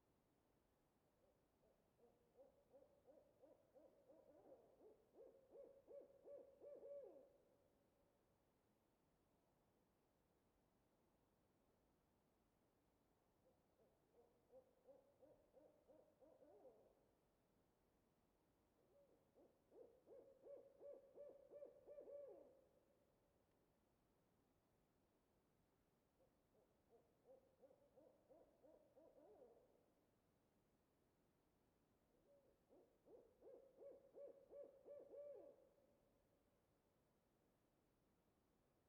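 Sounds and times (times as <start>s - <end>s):
owl hooting: 2.0s - 7.3s, 13.8s - 17.0s, 18.9s - 22.7s, 26.6s - 29.8s, 32.1s - 35.7s.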